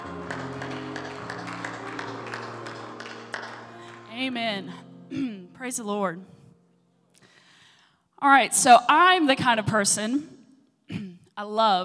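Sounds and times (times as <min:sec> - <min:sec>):
audience hand clap: 0:00.0 - 0:04.4
speech: 0:04.2 - 0:06.4, 0:08.2 - 0:10.3, 0:10.9 - 0:11.8.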